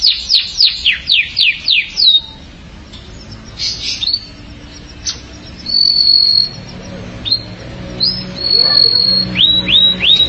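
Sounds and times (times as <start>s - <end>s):
canary whistled song: 0.0s - 10.2s.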